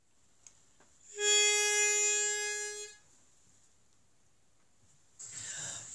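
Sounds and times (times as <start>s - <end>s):
bass: 1.1s - 2.9s.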